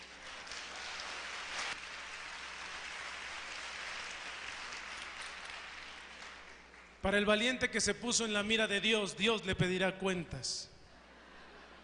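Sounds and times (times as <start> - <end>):
audience applause: 0.0 - 7.0
speech: 7.0 - 10.7.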